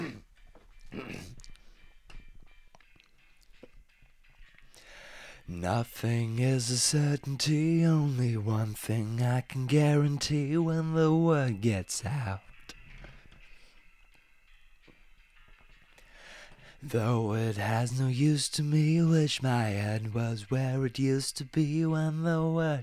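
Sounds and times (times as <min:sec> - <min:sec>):
vocals: 0:00.0 - 0:00.2, 0:04.8 - 0:13.3, 0:16.1 - 0:22.8.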